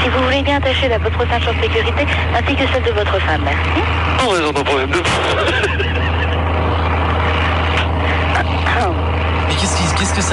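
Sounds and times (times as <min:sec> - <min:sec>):
airplane engines revving for takeoff: 0:00.0 - 0:10.3
speech: 0:00.5 - 0:05.9, 0:10.2 - 0:10.3
laughter: 0:05.1 - 0:06.7.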